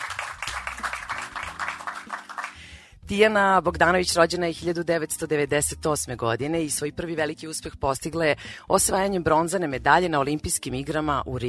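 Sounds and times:
audience applauding a taekwondo athlete introduced on stage: 0:00.0 - 0:02.6
speech: 0:03.1 - 0:11.4.

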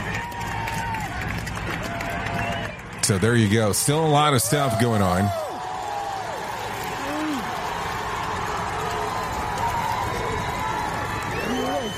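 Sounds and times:
crowd cheering: 0:00.0 - 0:11.9
speech: 0:03.1 - 0:05.4
thin whistle-like tone: 0:11.3 - 0:11.9.

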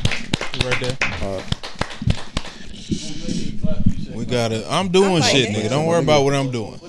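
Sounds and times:
hands clapping: 0:00.0 - 0:03.1
speech: 0:00.6 - 0:01.6, 0:02.9 - 0:06.8.

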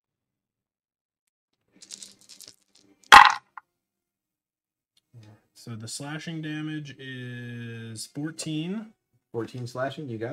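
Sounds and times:
dice rolling on a table: 0:01.8 - 0:03.6
speech: 0:05.6 - 0:10.3.

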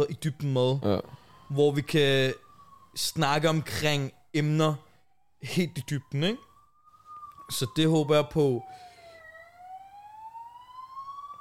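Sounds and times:
speech: 0:00.0 - 0:06.5, 0:07.5 - 0:08.9
police sirens: 0:00.0 - 0:11.3.

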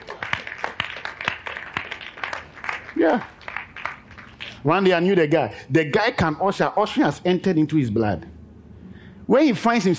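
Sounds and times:
people clapping: 0:00.0 - 0:04.7
speech: 0:03.0 - 0:03.4, 0:04.6 - 0:08.4, 0:09.3 - 0:09.9.

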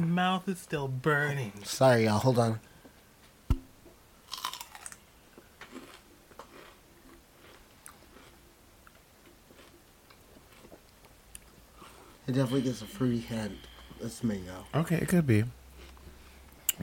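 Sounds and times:
speech: 0:00.0 - 0:02.7, 0:12.3 - 0:15.6
person chewing a piece of celery: 0:04.3 - 0:05.0, 0:05.6 - 0:11.6.

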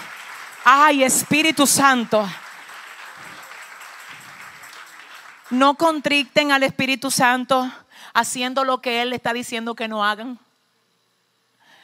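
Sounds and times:
crowd applause: 0:00.0 - 0:06.0
speech: 0:00.7 - 0:02.4, 0:05.5 - 0:10.4.

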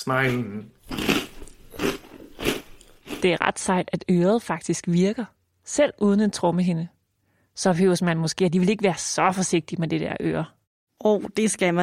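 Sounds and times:
speech: 0:00.0 - 0:00.8, 0:03.2 - 0:07.0, 0:07.6 - 0:11.8
crunching cornflakes while chewing: 0:00.9 - 0:03.2.

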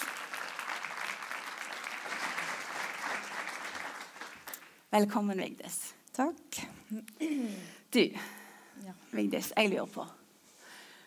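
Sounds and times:
audience applause: 0:00.0 - 0:04.8
speech: 0:04.9 - 0:10.2.

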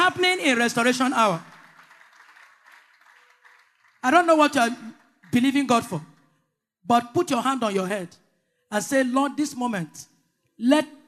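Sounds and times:
speech: 0:00.2 - 0:01.5, 0:04.0 - 0:06.1, 0:06.8 - 0:11.0
audience clapping: 0:00.3 - 0:06.0.

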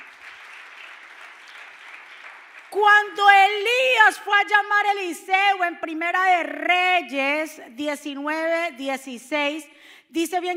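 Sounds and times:
loud applause: 0:00.0 - 0:03.6
speech: 0:02.7 - 0:10.5.

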